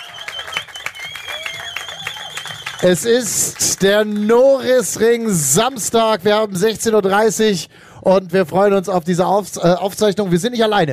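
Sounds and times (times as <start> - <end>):
live audience applause at the Norisring: 0.0 - 4.8
speech: 2.8 - 10.9.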